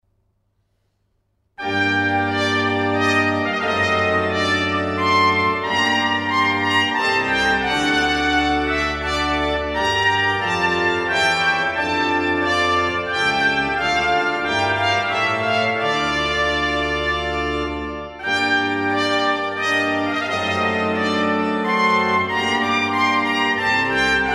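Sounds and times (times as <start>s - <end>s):
minuet on organ: 1.6s - 24.3s.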